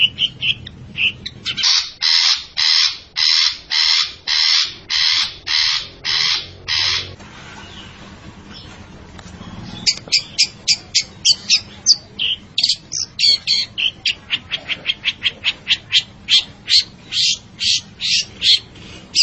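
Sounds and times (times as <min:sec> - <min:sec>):
long-tailed shrike singing scratchy chattering notes: 0:00.0 - 0:19.2.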